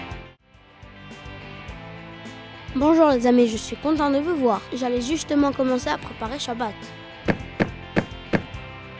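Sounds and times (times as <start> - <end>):
speech: 2.7 - 7.0
knocking on a door: 7.3 - 8.6.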